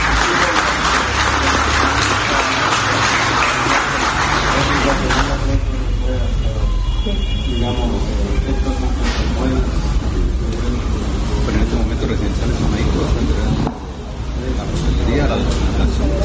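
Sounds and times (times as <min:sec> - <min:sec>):
audience applause: 0:00.0 - 0:05.8
voices talking: 0:00.0 - 0:16.2.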